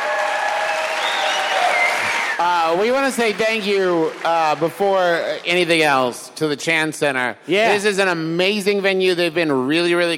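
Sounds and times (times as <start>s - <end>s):
audience applause: 0.0s - 6.1s
speech: 2.4s - 10.1s.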